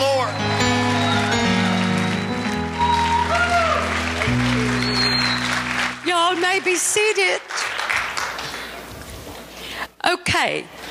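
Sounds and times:
audience clapping hands: 0.4 - 9.1
speech: 6.6 - 7.6, 10.1 - 10.8.

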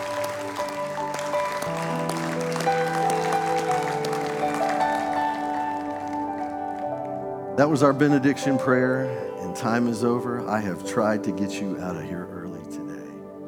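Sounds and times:
audience hand clapping: 0.0 - 9.2
sustained organ or keyboard chords: 0.0 - 13.4
speech: 7.6 - 12.4.

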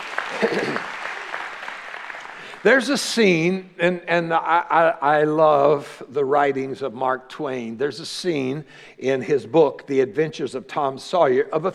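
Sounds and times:
audience clapping hands: 0.0 - 2.8
person's voice: 2.6 - 11.7
speech: 2.6 - 11.7.

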